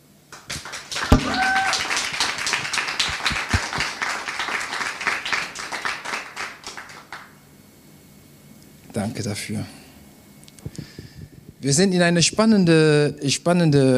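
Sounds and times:
audience clapping: 0.3 - 7.3
speech: 9.0 - 9.8, 11.6 - 13.9.

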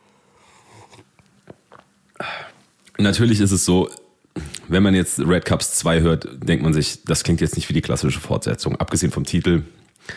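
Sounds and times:
person sipping coffee: 0.4 - 3.0
speech: 3.0 - 4.0, 4.7 - 10.1.

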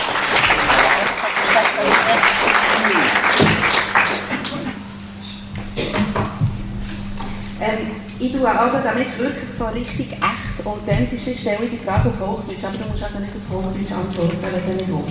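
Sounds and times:
applause: 0.0 - 4.8
laughter: 0.0 - 15.0
speech: 8.2 - 15.0.

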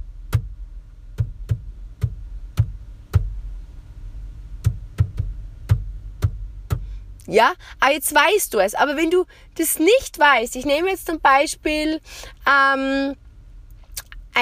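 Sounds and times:
low hum: 0.0 - 14.3
knocking out the rhythm of a song: 0.2 - 3.4, 4.6 - 6.9
speech: 7.3 - 13.2.

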